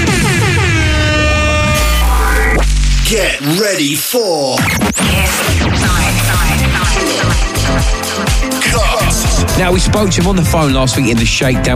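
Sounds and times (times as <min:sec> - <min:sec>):
klaxon air horn blast: 0:00.1 - 0:02.5
speech: 0:03.1 - 0:11.7.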